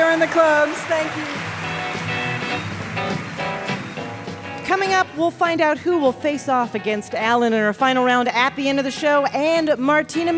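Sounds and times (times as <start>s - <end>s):
audience applause: 0.0s - 4.7s
speech: 0.2s - 2.7s, 4.7s - 10.3s.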